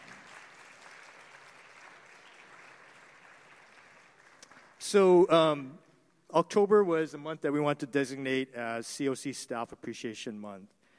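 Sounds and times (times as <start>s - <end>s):
audience applause: 0.0s - 4.9s
speech: 4.8s - 5.8s, 6.4s - 10.8s.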